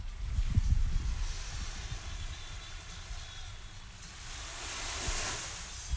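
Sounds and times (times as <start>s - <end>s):
ocean waves: 1.0s - 5.9s.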